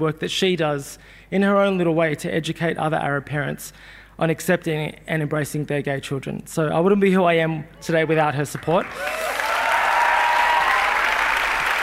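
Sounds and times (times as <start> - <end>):
speech: 0.0 - 9.4
audience applause: 8.6 - 11.8.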